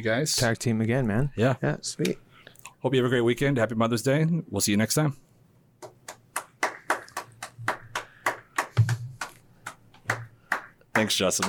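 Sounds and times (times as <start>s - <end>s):
speech: 0.0s - 2.2s, 2.8s - 5.2s, 11.0s - 11.4s
loud long hand clap: 5.8s - 11.4s.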